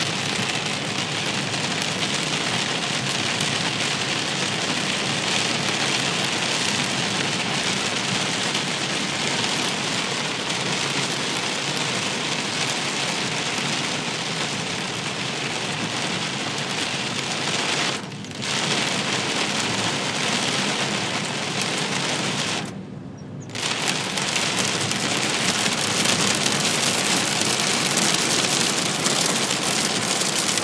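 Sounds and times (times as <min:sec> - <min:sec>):
super heavy rain while driving: 0:00.0 - 0:22.8, 0:23.5 - 0:30.6.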